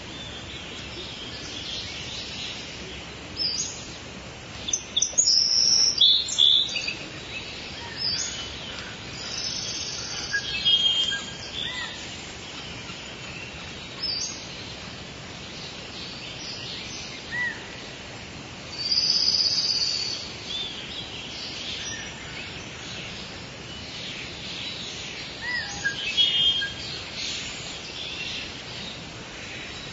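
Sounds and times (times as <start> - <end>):
rainforest ambience: 0.0 - 29.9.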